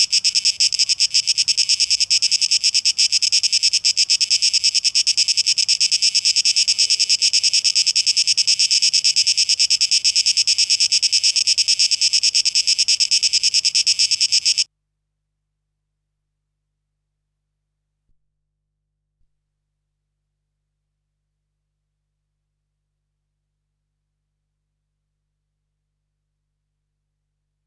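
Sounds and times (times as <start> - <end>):
cicadas buzzing: 0.0 - 14.7.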